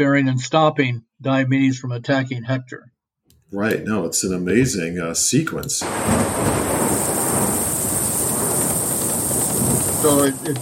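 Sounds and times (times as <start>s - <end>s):
speech: 0.0s - 2.9s, 3.5s - 7.0s, 10.0s - 10.6s
thunderclap sound effect: 5.8s - 10.6s
galloping horse: 6.0s - 10.6s.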